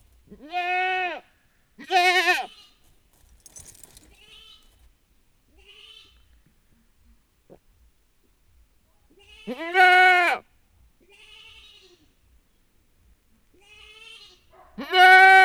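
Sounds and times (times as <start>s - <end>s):
domestic goat kid bleating for its mother in a farmyard: 0.3s - 2.7s, 5.6s - 6.2s, 9.2s - 10.4s, 11.0s - 12.2s, 13.5s - 15.4s.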